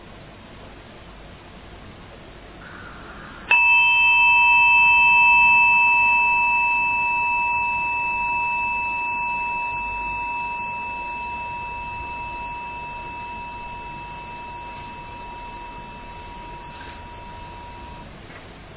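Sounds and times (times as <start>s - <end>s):
meditation bell ringing: 3.5s - 18.1s.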